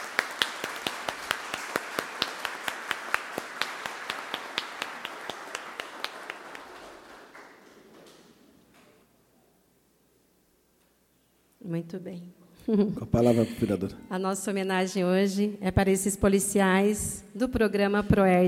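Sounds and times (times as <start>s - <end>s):
audience applause: 0.0s - 8.4s
speech: 11.7s - 18.4s.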